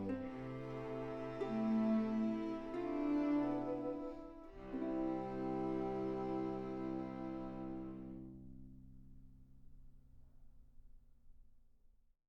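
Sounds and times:
ukulele: 0.0s - 9.3s.

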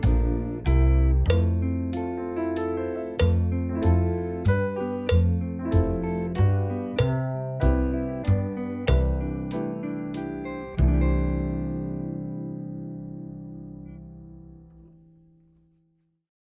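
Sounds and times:
drum kit playalong backing track: 0.0s - 12.2s.

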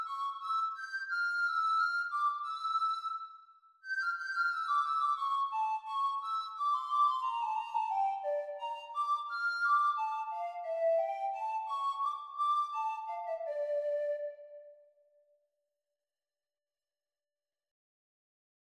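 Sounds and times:
descant recorder performance: 0.0s - 3.3s, 3.9s - 14.8s.

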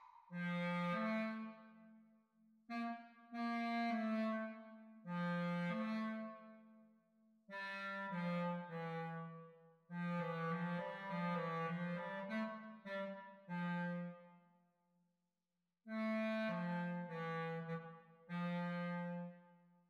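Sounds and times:
clarinet duet exam recording: 0.3s - 1.8s, 2.7s - 6.7s, 7.5s - 14.3s, 15.9s - 19.4s.

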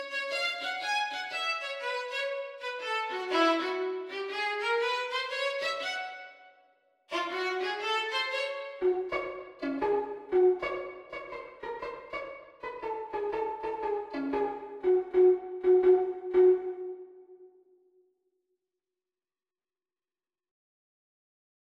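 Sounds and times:
violin duet: 0.0s - 6.4s, 7.1s - 17.0s.

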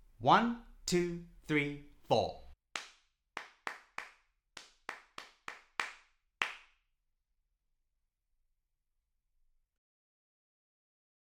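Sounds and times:
speech: 0.2s - 2.4s
hands clapping a rhythm: 2.7s - 6.8s.

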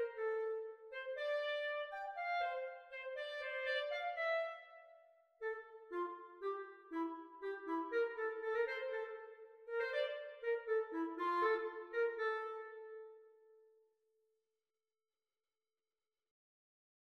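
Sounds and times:
clarinet duet exam recording: 0.0s - 13.6s.

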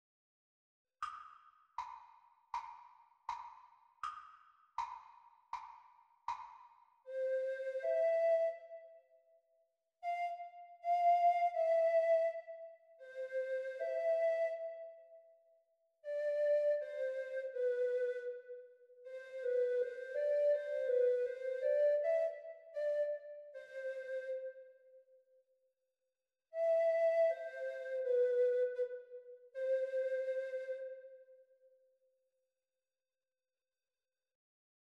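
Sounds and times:
treble recorder: 6.3s - 9.1s, 10.0s - 15.2s, 16.0s - 25.0s, 26.6s - 31.6s.

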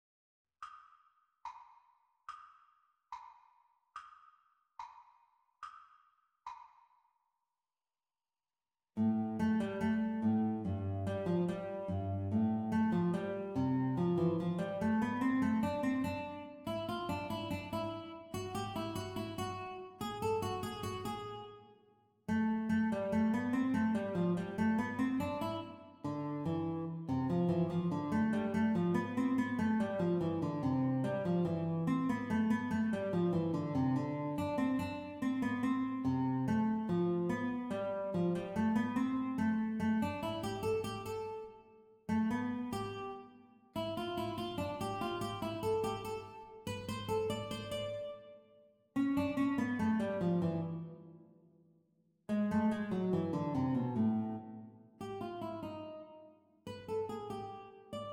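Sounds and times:
guitar duet playalong: 9.0s - 21.7s, 22.3s - 48.4s, 49.0s - 51.2s, 52.3s - 58.1s.

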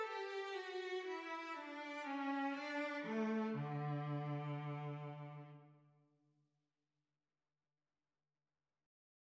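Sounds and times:
cello duet playalong: 0.0s - 5.8s.

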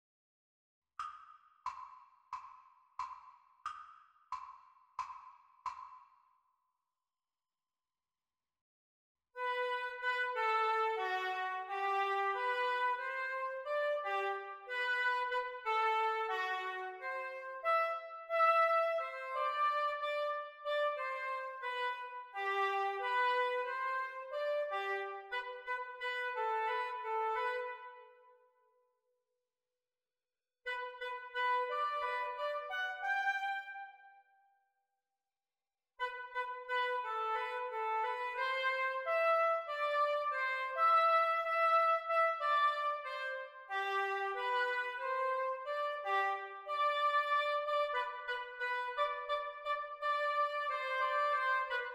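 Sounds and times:
oboe duet practice: 9.4s - 28.2s, 30.7s - 33.9s, 36.0s - 51.9s.

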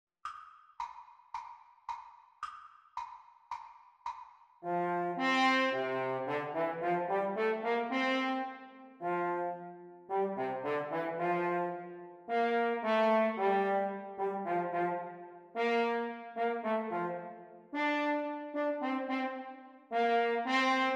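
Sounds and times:
French horn duets: 4.6s - 20.9s.

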